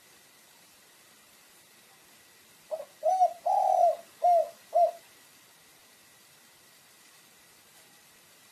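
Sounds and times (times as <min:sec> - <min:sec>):
pigeon giving low hollow coos: 0:02.7 - 0:05.1.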